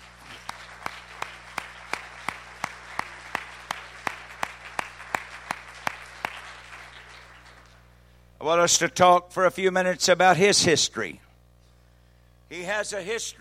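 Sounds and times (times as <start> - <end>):
audience clapping hands: 0.0 - 7.9
speech: 8.4 - 11.2, 12.5 - 13.3.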